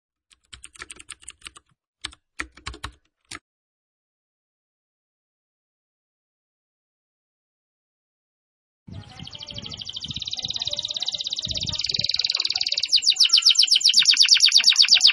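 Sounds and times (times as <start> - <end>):
canary singing vigorously: 8.9 - 15.1.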